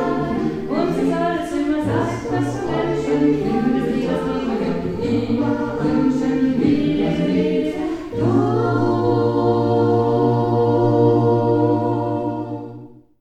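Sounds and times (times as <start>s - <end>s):
birthday song: 0.0s - 12.8s.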